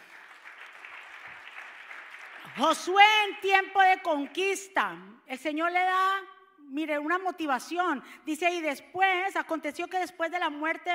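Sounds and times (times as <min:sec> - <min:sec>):
audience applause: 0:00.0 - 0:02.6
speech: 0:02.6 - 0:10.9.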